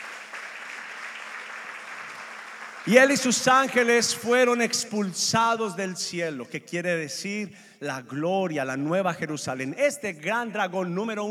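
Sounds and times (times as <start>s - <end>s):
church congregation applauding during a sermon: 0.0s - 4.6s
speech: 2.8s - 11.2s.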